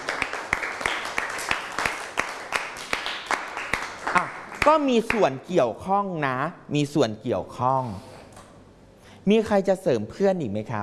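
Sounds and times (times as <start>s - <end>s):
class of children clapping for a classmate: 0.0s - 5.2s
speech: 4.2s - 8.1s, 9.2s - 10.8s.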